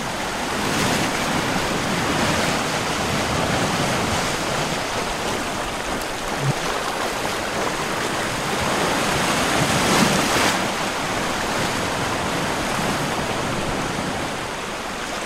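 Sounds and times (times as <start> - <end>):
reversed ocean waves: 0.0 - 15.2.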